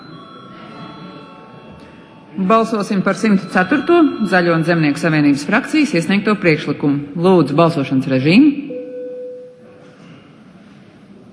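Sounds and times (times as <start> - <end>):
parliament electric voting bell ringing: 0.0 - 6.2
speech: 2.3 - 8.6.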